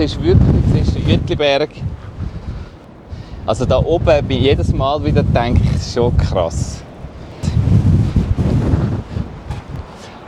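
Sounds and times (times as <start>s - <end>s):
speech: 0.0s - 2.0s, 3.4s - 6.8s
strong wind blowing outdoors: 0.0s - 10.2s.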